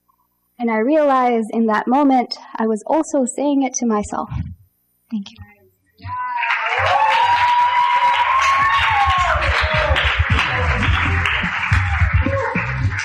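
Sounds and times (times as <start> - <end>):
speech: 0.6 - 4.5, 5.1 - 6.2
whoops and cheering voices: 6.0 - 13.0
crowd applauding: 6.1 - 13.0.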